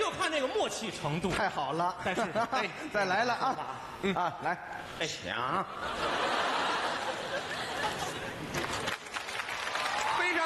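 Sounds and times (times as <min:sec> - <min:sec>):
speech: 0:00.4 - 0:06.3
laughter: 0:05.6 - 0:09.0
audience applause for two performers on stage: 0:08.5 - 0:10.4.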